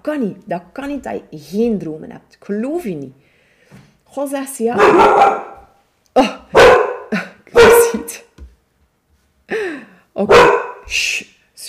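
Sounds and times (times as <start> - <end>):
speech: 0.0 - 5.5, 7.9 - 8.3, 10.2 - 11.0
dog barking after door slammed: 4.7 - 5.8, 6.5 - 8.1, 10.3 - 10.9.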